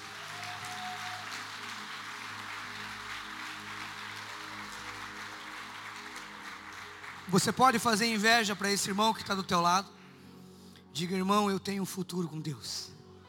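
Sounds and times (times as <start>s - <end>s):
audience applauding: 0.0s - 9.0s
speech: 7.3s - 10.0s, 11.0s - 13.0s.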